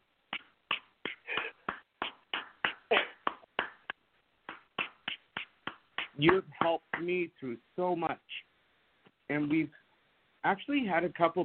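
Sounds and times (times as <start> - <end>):
hand claps: 0.3 - 7.2
speech: 6.2 - 8.4, 9.3 - 9.8, 10.4 - 11.4.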